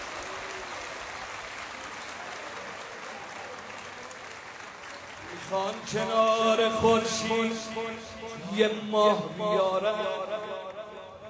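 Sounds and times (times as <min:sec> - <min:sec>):
audience clapping hands in applause: 0:00.0 - 0:07.5
speech: 0:05.4 - 0:10.3.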